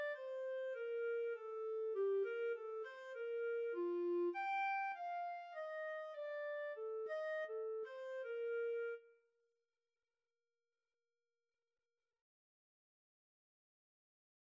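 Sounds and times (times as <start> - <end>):
clarinet and saxophone duet melody: 0.0 - 9.1.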